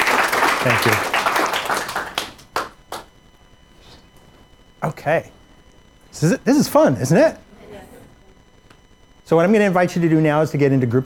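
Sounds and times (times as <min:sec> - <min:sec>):
round of applause: 0:00.0 - 0:03.1
speech: 0:00.6 - 0:01.2, 0:04.8 - 0:05.4, 0:06.1 - 0:07.4, 0:09.3 - 0:11.0.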